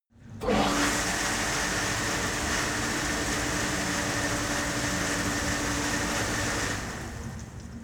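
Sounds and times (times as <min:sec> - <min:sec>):
cleaning machine starting, running and stopping: 0:00.4 - 0:07.6.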